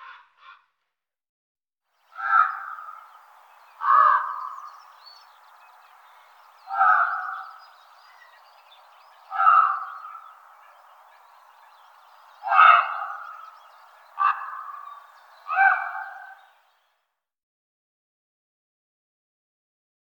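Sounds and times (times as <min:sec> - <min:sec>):
songbirds singing: 0:02.0 - 0:16.9
raven calling: 0:02.1 - 0:16.7.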